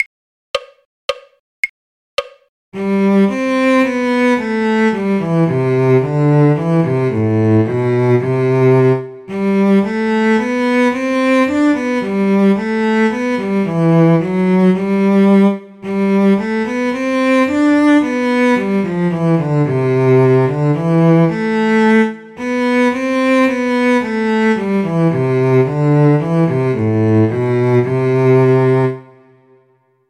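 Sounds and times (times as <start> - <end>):
cello: 2.8 - 29.7.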